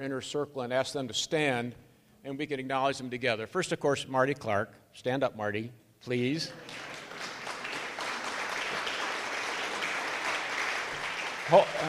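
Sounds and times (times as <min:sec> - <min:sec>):
speech: 0:00.0 - 0:07.0, 0:11.5 - 0:11.8
audience applause: 0:06.6 - 0:11.8.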